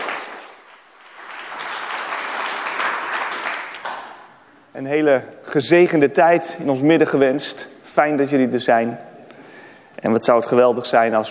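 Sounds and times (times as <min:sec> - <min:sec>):
warm applause: 0:00.0 - 0:04.3
speech: 0:04.8 - 0:09.1, 0:10.0 - 0:11.3.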